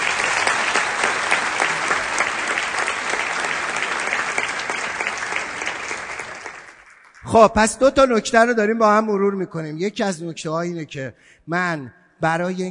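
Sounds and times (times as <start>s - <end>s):
group applauding itself during a teaching session: 0.0s - 7.4s
speech: 7.3s - 12.6s.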